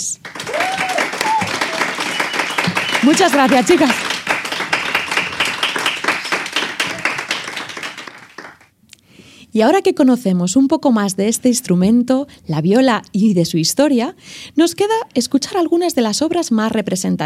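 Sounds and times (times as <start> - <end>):
studio audience applauding: 0.1 - 8.7
speech: 3.0 - 4.2, 9.6 - 17.2.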